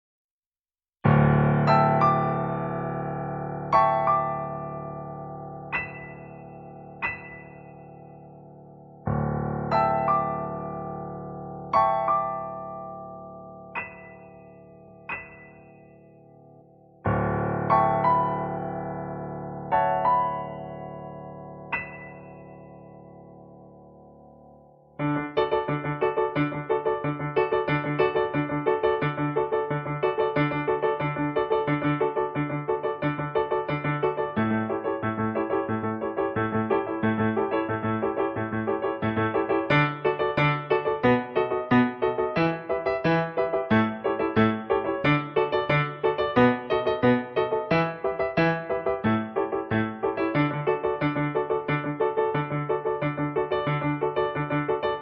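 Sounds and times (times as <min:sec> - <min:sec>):
piano: 0:01.0 - 0:55.0.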